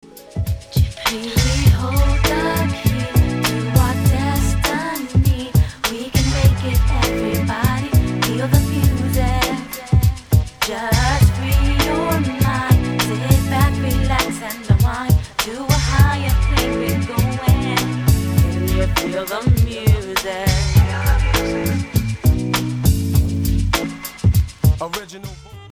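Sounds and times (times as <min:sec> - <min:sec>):
smooth jazz chillout: 0:00.0 - 0:25.7.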